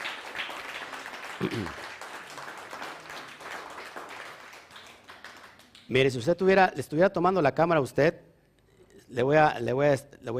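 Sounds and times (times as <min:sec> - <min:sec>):
audience applause: 0:00.0 - 0:05.8
speech: 0:01.4 - 0:01.8, 0:05.9 - 0:08.3, 0:09.1 - 0:10.3.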